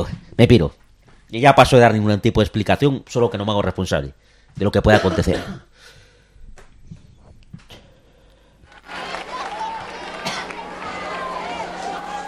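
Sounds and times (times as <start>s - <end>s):
speech: 0.0s - 5.7s
audience applause: 8.7s - 12.2s.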